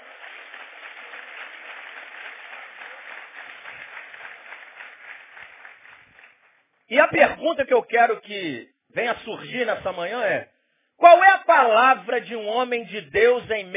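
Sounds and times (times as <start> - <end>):
audience applause: 0.0 - 6.6
speech: 6.9 - 13.7.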